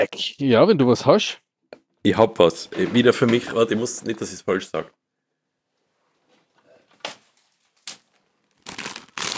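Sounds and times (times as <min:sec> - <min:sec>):
speech: 0:00.0 - 0:01.4, 0:02.0 - 0:05.0
plastic snack packaging crinkling as it is opened: 0:07.4 - 0:09.3.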